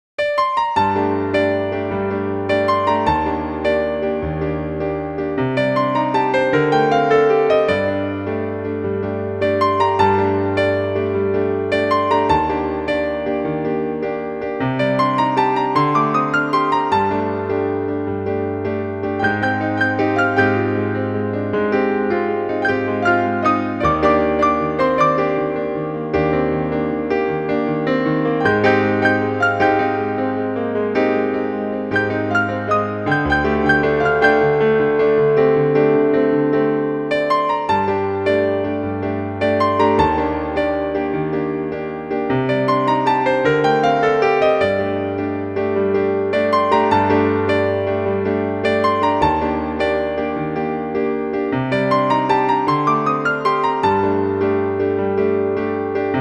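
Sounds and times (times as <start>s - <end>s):
piano music: 0.2s - 56.1s.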